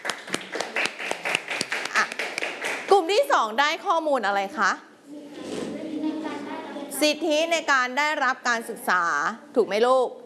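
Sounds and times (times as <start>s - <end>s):
children in a classroom clapping for their classmates: 0.0s - 2.9s
speech: 3.1s - 4.9s, 7.0s - 10.2s.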